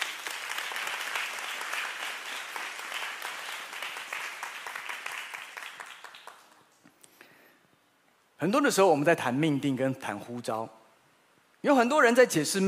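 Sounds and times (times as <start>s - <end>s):
audience applause: 0.0s - 6.7s
speech: 8.4s - 10.8s, 11.6s - 12.6s.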